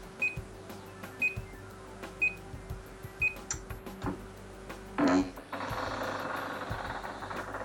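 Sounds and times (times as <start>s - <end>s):
treadmill high-pitched electronic beeps: 0.2s - 2.4s
treadmill motor starting and whirring: 5.5s - 7.6s.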